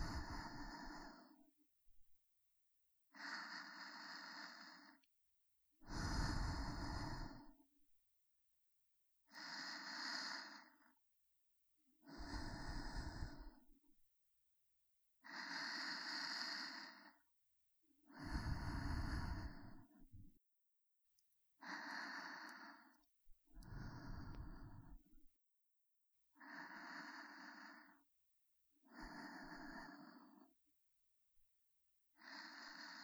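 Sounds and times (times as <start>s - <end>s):
breathing in the right and left ear: 0.0s - 1.5s, 3.1s - 5.1s, 5.8s - 7.6s, 9.3s - 10.9s, 12.0s - 13.7s, 15.2s - 17.2s, 18.1s - 20.4s, 21.6s - 25.3s, 26.4s - 28.1s, 28.9s - 30.6s, 32.2s - 33.0s.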